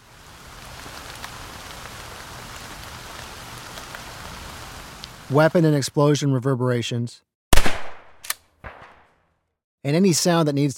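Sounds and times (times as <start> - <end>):
rain: 0.0 - 5.8
speech: 5.3 - 7.3, 9.8 - 10.7.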